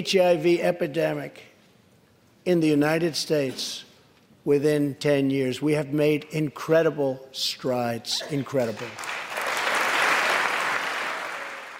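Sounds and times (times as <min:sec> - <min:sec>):
speech: 0:00.0 - 0:01.5, 0:02.4 - 0:09.2
large crowd applause after speech: 0:08.8 - 0:11.7.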